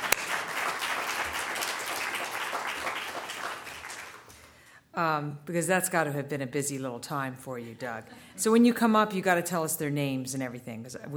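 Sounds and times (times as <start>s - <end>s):
audience applause: 0.0s - 4.3s
speech: 5.0s - 11.1s.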